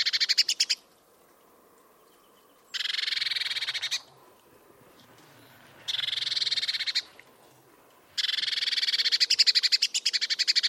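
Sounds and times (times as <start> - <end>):
Eurasian blue tit giving a harsh buzzy churr: 0.0 - 0.8, 2.7 - 7.4, 8.0 - 10.6.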